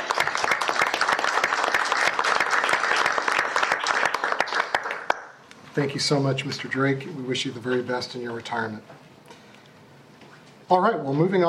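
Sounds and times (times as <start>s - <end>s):
audience applause: 0.0s - 5.4s
speech: 5.8s - 9.0s, 10.7s - 11.4s.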